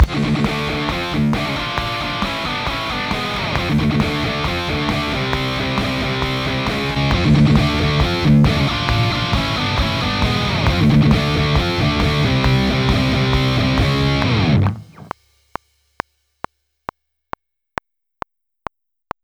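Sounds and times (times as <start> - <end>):
guitar: 0.0 - 15.1.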